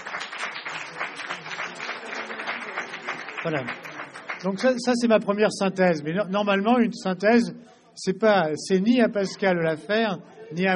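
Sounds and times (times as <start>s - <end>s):
audience applause: 0.0s - 4.8s
speech: 3.4s - 3.8s, 4.4s - 10.7s.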